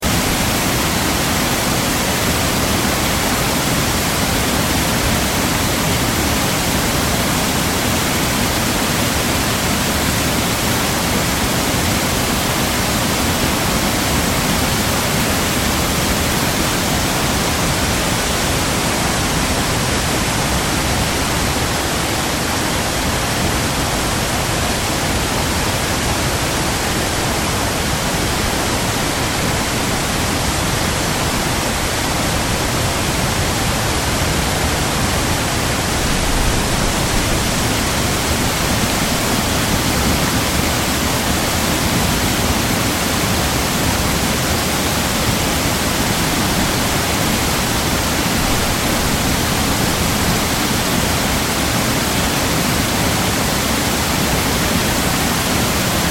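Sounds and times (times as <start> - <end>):
waterfall on Oak Creek South Milwaukee WI: 0.0 - 56.1.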